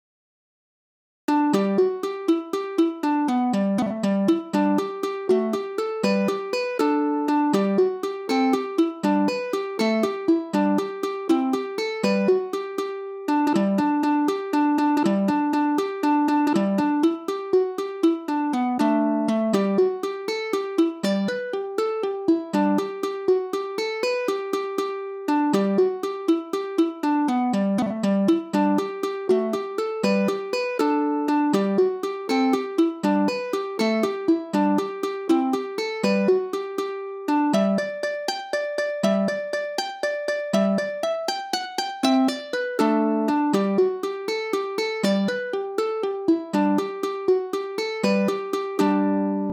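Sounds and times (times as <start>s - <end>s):
jig tune: 1.3s - 49.5s.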